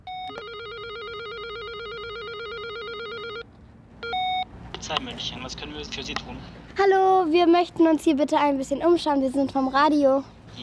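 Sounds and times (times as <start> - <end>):
electronic doorbell trilling between two pitches: 0.0 - 3.4, 4.0 - 4.4
faint noise: 0.0 - 10.6
speech: 4.9 - 10.6.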